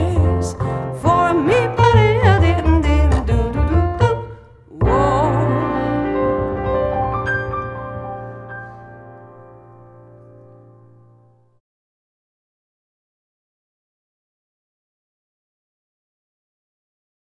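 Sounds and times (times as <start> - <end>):
jazz music: 0.0 - 11.2.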